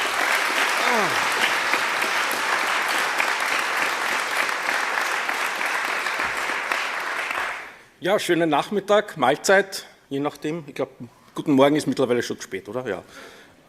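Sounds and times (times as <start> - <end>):
audience applause: 0.0 - 7.8
speech: 0.9 - 1.3, 8.0 - 13.6.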